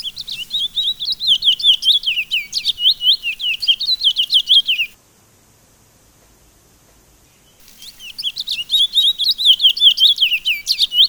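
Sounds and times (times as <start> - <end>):
Sunda laughingthrush song of quick high-pitched slurred chirps: 0.0 - 5.0, 7.6 - 11.0.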